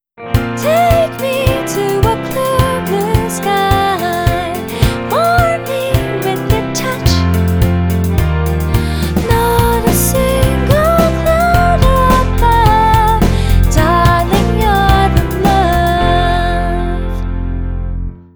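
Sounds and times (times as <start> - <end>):
music: 0.1 - 18.3.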